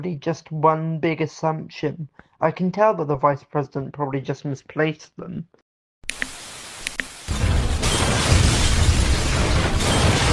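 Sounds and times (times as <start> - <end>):
speech: 0.0 - 5.6
sharp clicks: 6.0 - 7.1
boulder smashing through a TV: 7.3 - 10.3
rumbling roar of debris: 7.3 - 10.3.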